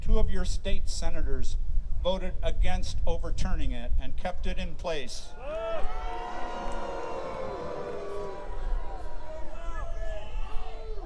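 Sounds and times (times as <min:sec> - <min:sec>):
speech: 0:00.2 - 0:06.0
crowd booing: 0:05.3 - 0:11.0.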